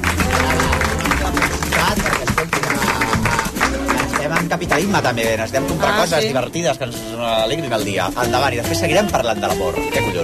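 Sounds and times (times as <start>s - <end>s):
applause: 0.0s - 6.0s
speech: 4.5s - 10.2s.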